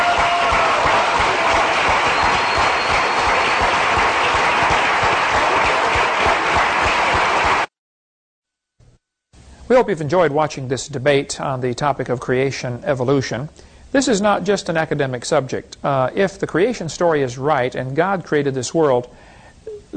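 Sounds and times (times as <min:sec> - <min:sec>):
audience applauding after debate: 0:00.0 - 0:07.7
speech: 0:09.7 - 0:19.9.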